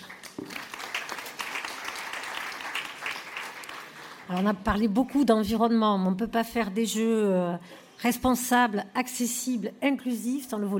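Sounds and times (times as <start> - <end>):
audience applause: 0.0 - 4.4
speech: 0.4 - 0.6, 4.3 - 10.7.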